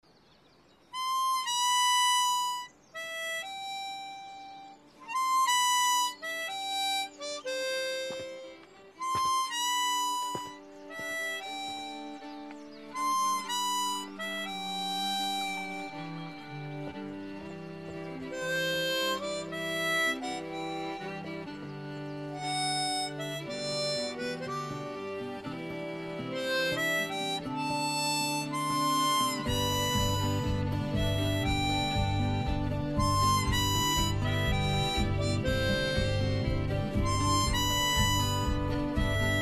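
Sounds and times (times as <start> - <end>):
harmonica: 0.8 - 39.4.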